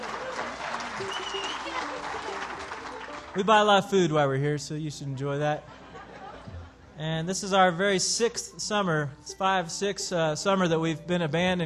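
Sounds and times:
audience applause: 0.0s - 3.9s
speech: 3.4s - 5.8s, 7.0s - 11.6s
laughter: 5.4s - 7.6s.

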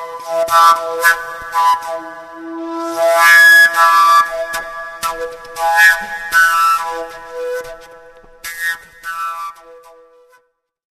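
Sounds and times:
overtone flute: 0.0s - 10.6s.

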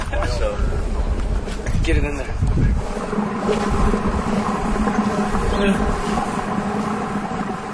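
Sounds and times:
faint crackles: 0.0s - 7.7s
wort violently boiling from superheated rocks: 0.0s - 7.7s
speech: 1.9s - 4.9s, 5.6s - 6.4s.

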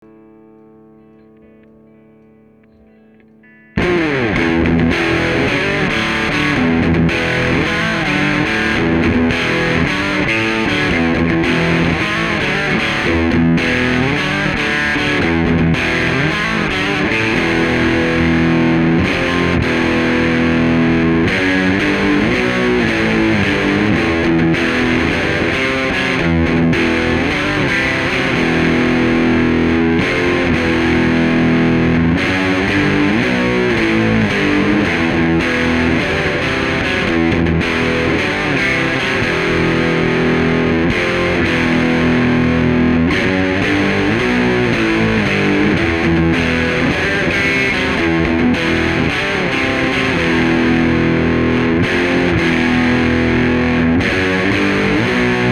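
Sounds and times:
guitar: 0.0s - 55.5s.

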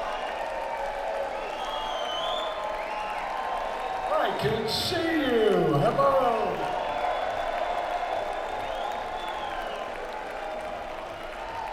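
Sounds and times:
large live audience clapping: 0.0s - 11.7s
speech: 4.4s - 6.7s.

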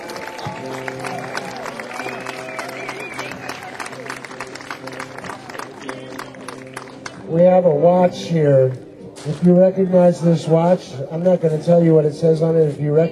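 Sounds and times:
audience round of applause: 0.0s - 7.2s
speech: 7.3s - 13.1s.

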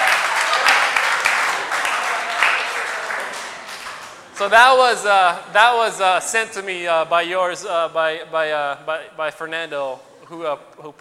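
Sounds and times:
women in audience clapping: 0.0s - 4.4s
speech: 4.4s - 10.9s.

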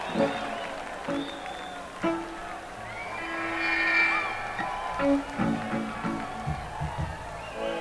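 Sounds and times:
encore music break: 0.2s - 7.6s.

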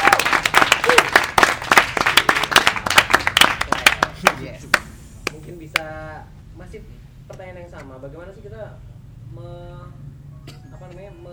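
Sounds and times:
audience applause: 0.0s - 4.8s
speech: 6.2s - 11.3s.

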